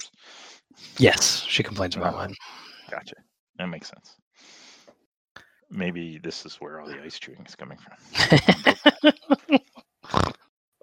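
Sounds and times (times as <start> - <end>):
speech: 1.0 - 4.2, 5.7 - 9.6
laughter: 8.1 - 9.8
snort: 10.1 - 10.4.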